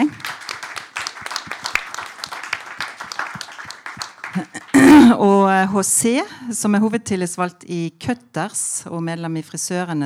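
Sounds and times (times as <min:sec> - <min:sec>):
audience applause: 0:00.0 - 0:04.4
speech: 0:04.4 - 0:10.0.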